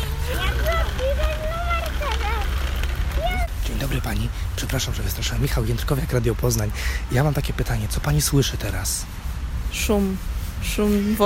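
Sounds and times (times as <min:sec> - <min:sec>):
child: 0:00.0 - 0:04.1
running water from park fountains: 0:00.0 - 0:04.3
speech: 0:04.0 - 0:11.2.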